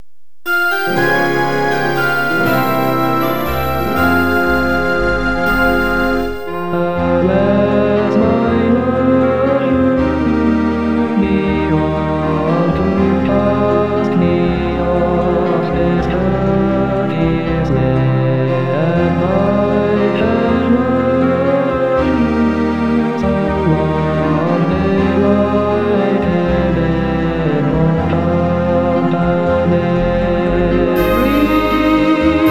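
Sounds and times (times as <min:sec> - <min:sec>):
karaoke singing: 0:00.5 - 0:32.4.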